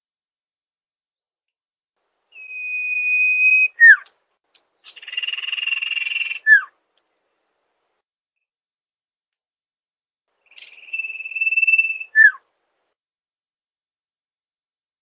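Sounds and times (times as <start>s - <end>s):
bird song used for training songbirds: 2.3s - 4.1s, 4.8s - 6.7s, 10.4s - 12.4s.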